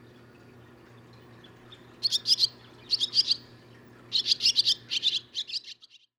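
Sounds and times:
Barn swallow twittering: 1.4 - 3.5, 4.1 - 6.1.

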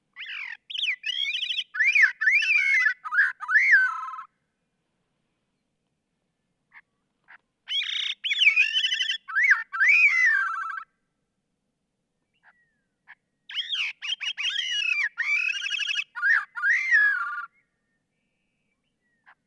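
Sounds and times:
Gray-cheeked Thrush calling: 0.2 - 4.3, 6.7 - 10.9, 13.5 - 17.5.

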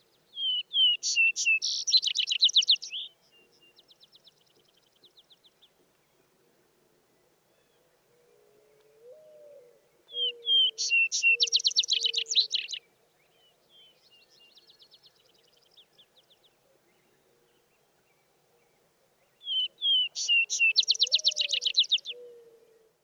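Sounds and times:
vesper sparrow singing: 0.0 - 5.7, 10.1 - 17.7, 19.2 - 22.2.

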